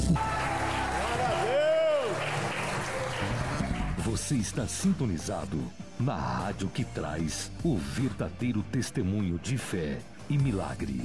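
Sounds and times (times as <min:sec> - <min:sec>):
crowd applauding: 0:00.0 - 0:04.1
speech: 0:00.1 - 0:00.3, 0:04.2 - 0:11.0.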